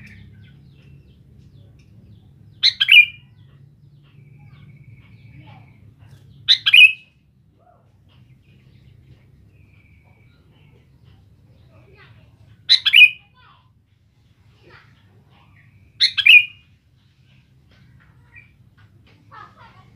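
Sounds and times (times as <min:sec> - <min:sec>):
sooty-headed bulbul chirping: 0:02.6 - 0:03.6, 0:06.5 - 0:07.2, 0:12.7 - 0:13.3, 0:16.0 - 0:16.6.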